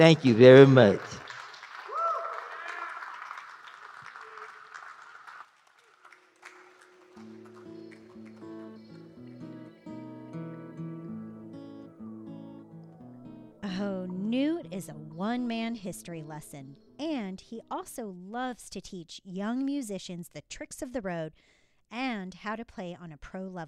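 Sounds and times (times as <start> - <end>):
speech: 0.0 - 1.1, 15.4 - 23.6
audience round of applause with cheering: 0.0 - 11.5, 12.1 - 13.6
steady instrumental music: 6.2 - 17.7.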